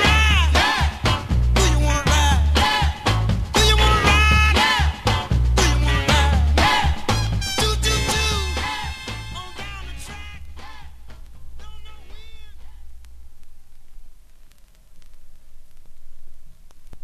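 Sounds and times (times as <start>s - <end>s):
funky soul music: 0.0s - 12.9s.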